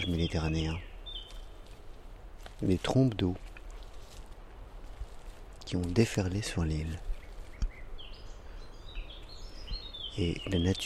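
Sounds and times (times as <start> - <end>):
speech: 0.0 - 0.9, 2.6 - 3.5, 5.7 - 7.1, 10.2 - 10.8
common blackbird singing: 0.0 - 1.6, 6.2 - 10.8.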